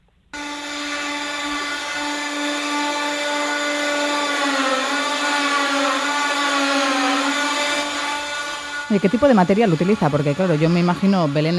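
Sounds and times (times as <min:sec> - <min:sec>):
saw cutting olive wood for handmade nativity figures: 0:00.4 - 0:11.5
speech: 0:08.9 - 0:11.5.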